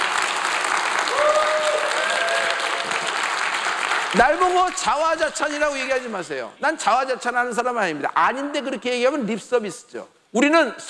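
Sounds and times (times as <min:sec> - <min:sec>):
crowd applauding: 0:00.0 - 0:06.1
speech: 0:04.1 - 0:10.8.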